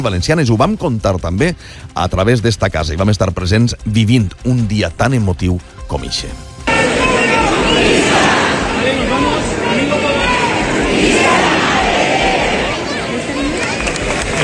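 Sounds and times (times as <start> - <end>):
speech: 0.0 - 6.5
large crowd shouting a festive cry: 6.7 - 14.4.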